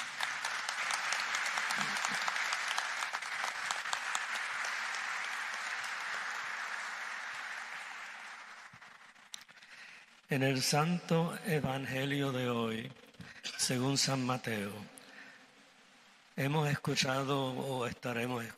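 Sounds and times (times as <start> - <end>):
audience applause: 0.0 - 10.1
speech: 10.3 - 13.0, 13.6 - 15.0, 16.4 - 18.5.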